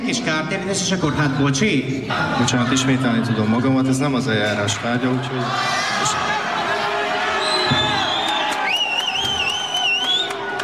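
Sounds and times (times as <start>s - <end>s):
crowd noise and voices: 0.0s - 10.6s
speech: 0.1s - 6.4s
laughter: 1.4s - 5.4s
sustained whistle-like tone: 7.4s - 10.5s
applause for the head of a mothers' environmental association: 8.0s - 10.6s.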